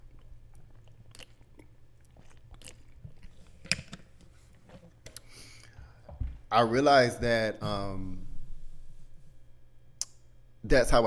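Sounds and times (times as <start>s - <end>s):
drinking a sip of water: 0.0s - 6.1s
speech: 6.5s - 8.2s, 10.7s - 11.0s.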